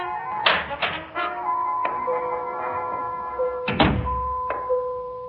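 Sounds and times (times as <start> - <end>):
door opening: 0.3 - 4.8.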